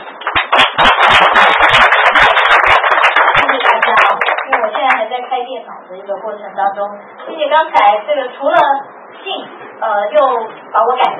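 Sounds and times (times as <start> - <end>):
audience applause: 0.0 - 5.0
speech: 6.3 - 11.1.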